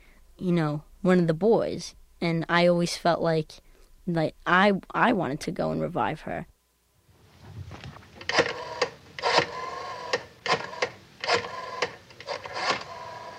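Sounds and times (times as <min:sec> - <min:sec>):
speech: 0:00.4 - 0:06.5
rotary phone dialing: 0:08.2 - 0:13.3.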